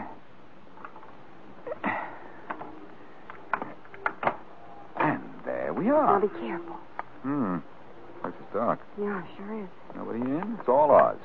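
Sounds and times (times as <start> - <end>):
locked side door being forced open: 3.4 - 5.1
speech: 5.8 - 11.2.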